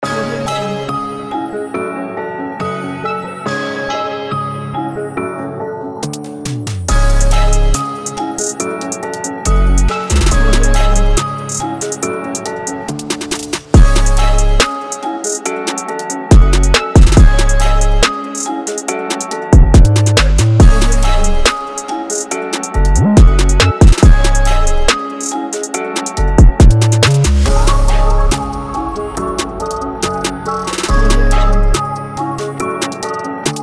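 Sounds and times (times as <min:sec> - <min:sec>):
drill trap beat: 0:06.9 - 0:33.6.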